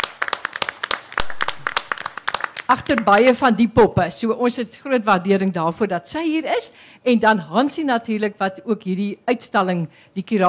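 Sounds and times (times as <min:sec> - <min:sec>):
small audience hand clapping at a dancing dolls exhibition opening: 0:00.0 - 0:03.4
speech: 0:02.7 - 0:10.4.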